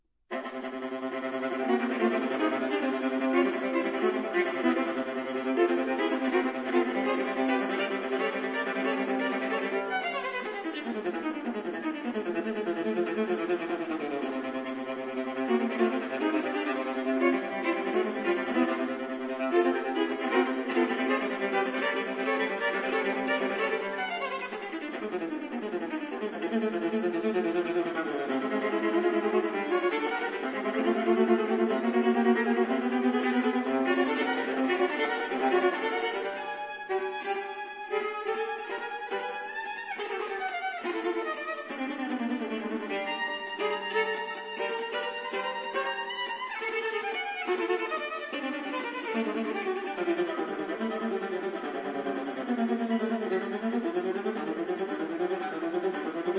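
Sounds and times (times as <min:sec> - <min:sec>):
viola sonatas: 0:00.3 - 0:56.3.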